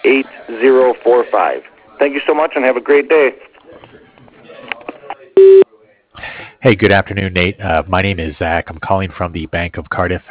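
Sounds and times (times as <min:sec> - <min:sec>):
speech: 0:00.1 - 0:03.6, 0:06.6 - 0:10.2
voicemail recording beep: 0:05.4 - 0:05.6.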